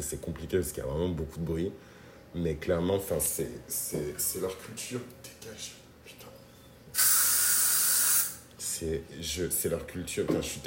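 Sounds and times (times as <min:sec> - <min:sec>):
speech: 0:00.0 - 0:05.8, 0:08.8 - 0:10.6
aerosol spray from a can of insect repellent: 0:07.0 - 0:08.4.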